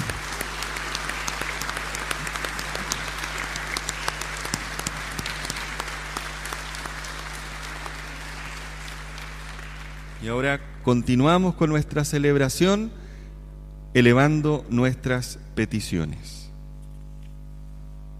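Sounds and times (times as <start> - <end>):
applause: 0.0 - 11.0
speech: 10.3 - 13.0, 14.0 - 16.4.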